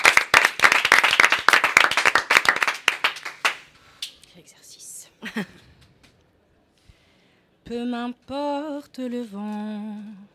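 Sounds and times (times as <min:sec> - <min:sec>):
audience applause: 0:00.0 - 0:03.7
speech: 0:05.3 - 0:05.6, 0:07.7 - 0:10.3.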